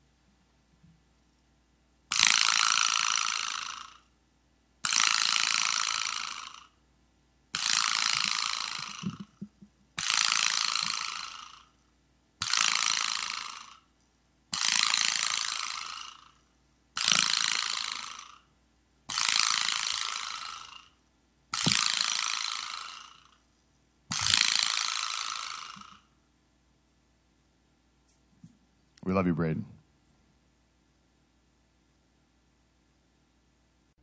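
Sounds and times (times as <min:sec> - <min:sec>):
slap rattle salute, harsh ratchet-like rattling: 0:02.1 - 0:04.0, 0:04.8 - 0:06.7, 0:07.5 - 0:11.7, 0:12.4 - 0:13.8, 0:14.5 - 0:16.4, 0:17.0 - 0:18.5, 0:19.1 - 0:20.9, 0:21.5 - 0:23.4, 0:24.1 - 0:26.0
speech: 0:29.1 - 0:29.8.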